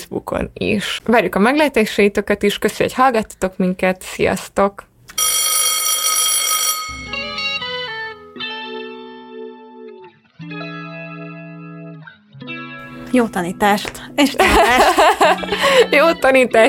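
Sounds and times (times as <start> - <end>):
speech: 0.1 - 4.9, 13.1 - 16.6
loud buzzing electric school bell ringing: 5.2 - 8.3
sustained melodic school bell chime tones playing a short tune: 6.8 - 8.3
laughter: 14.3 - 16.1.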